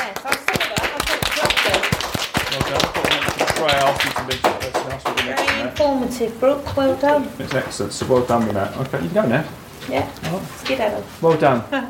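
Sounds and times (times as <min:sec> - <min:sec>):
small group clapping: 0:00.0 - 0:09.0
speech: 0:04.0 - 0:11.8
voices murmuring: 0:05.2 - 0:11.8.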